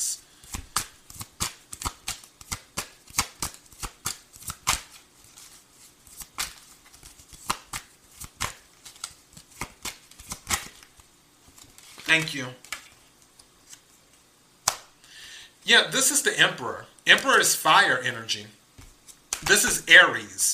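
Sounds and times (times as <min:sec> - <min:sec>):
tarot cards being shuffled: 0:00.4 - 0:14.8, 0:18.8 - 0:19.9
speech: 0:12.1 - 0:12.6, 0:15.7 - 0:18.6, 0:19.5 - 0:20.5.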